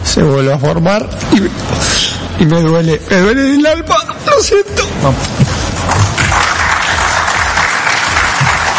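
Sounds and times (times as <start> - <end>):
speech: 0.2 - 5.5
press applauding at conference: 5.7 - 8.7.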